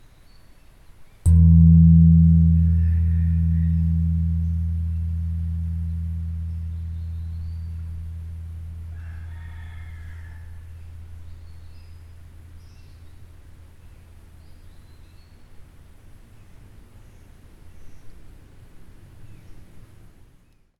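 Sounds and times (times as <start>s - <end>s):
medium gong in the temple: 1.3s - 9.4s, 10.0s - 14.2s.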